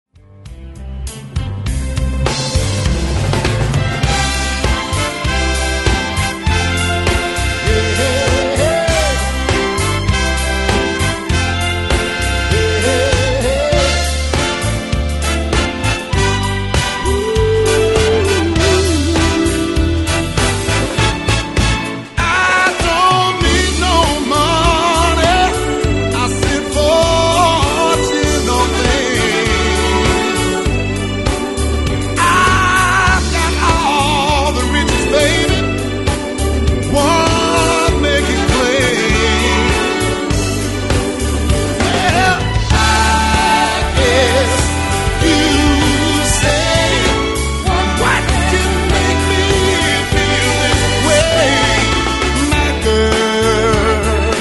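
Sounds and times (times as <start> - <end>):
orchestra: 0.2 - 54.3.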